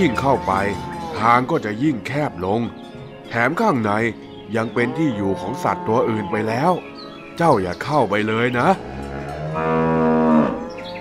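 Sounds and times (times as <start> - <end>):
cow mooing: 0.0 - 1.5, 4.6 - 6.8, 8.6 - 10.9
speech: 0.0 - 9.0, 9.6 - 10.0.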